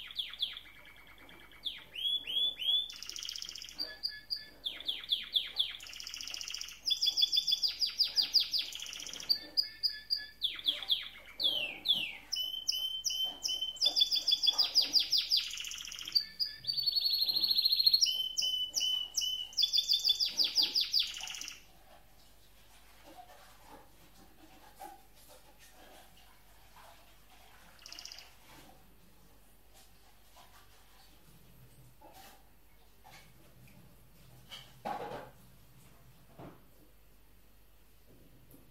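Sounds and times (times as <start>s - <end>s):
canary singing: 0.0s - 21.7s, 27.7s - 28.5s.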